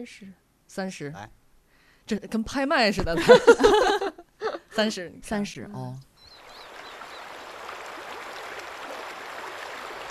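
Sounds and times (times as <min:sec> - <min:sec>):
speech: 0:00.0 - 0:01.4, 0:02.1 - 0:04.1, 0:04.8 - 0:06.1
laughter: 0:03.2 - 0:04.6
babbling stream water: 0:06.3 - 0:10.0.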